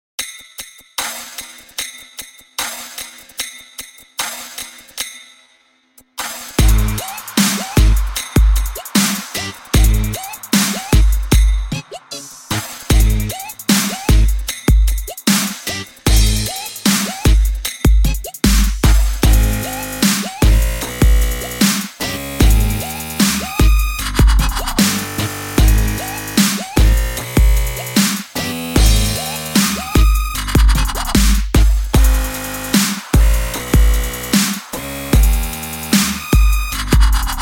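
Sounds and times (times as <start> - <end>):
music bass: 6.6 - 8.5, 9.3 - 14.6, 15.6 - 37.4.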